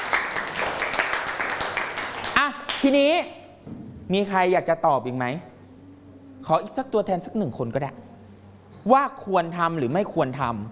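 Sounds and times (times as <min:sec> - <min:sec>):
students in a classroom applauding a classmate: 0:00.0 - 0:03.0
speech: 0:02.5 - 0:05.5, 0:06.4 - 0:08.1, 0:08.8 - 0:10.6.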